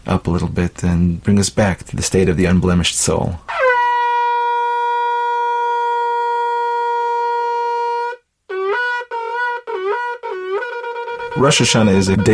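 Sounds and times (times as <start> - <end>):
speech: 0.0 - 3.6, 11.4 - 12.3
shofar howling: 3.5 - 12.3.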